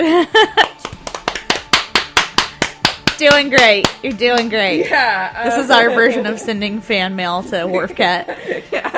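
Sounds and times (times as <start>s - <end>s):
speech: 0.0s - 0.7s, 3.2s - 8.9s
hosts clapping hands in applause: 0.6s - 4.5s.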